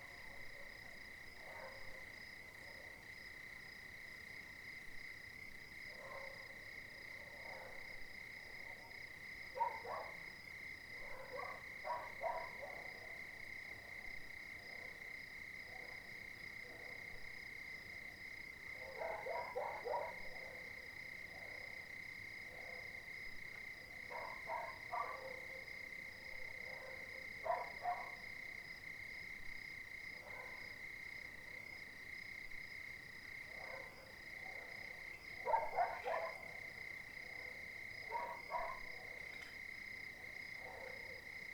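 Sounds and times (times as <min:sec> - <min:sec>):
chorus of crickets: 0:00.0 - 0:41.5
dogs barking: 0:11.1 - 0:12.9, 0:18.9 - 0:20.2, 0:24.1 - 0:25.6, 0:26.7 - 0:28.2, 0:35.4 - 0:36.6, 0:38.1 - 0:39.3, 0:40.6 - 0:41.2.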